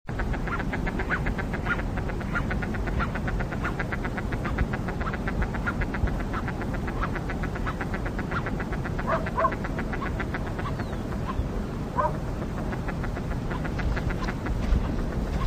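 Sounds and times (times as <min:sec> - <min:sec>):
crested duck giving short sharp calls: 0:00.2 - 0:11.4, 0:12.0 - 0:15.4.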